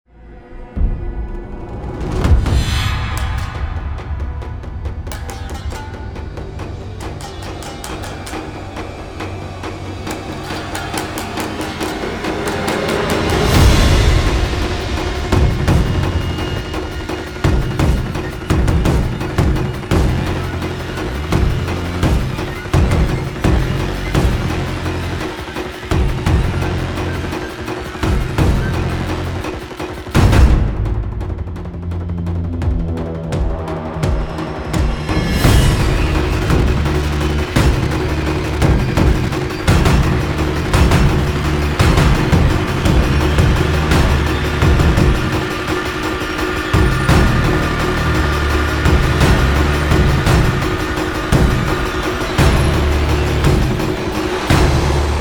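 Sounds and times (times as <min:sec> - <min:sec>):
taiko drums: 0:00.8 - 0:55.1.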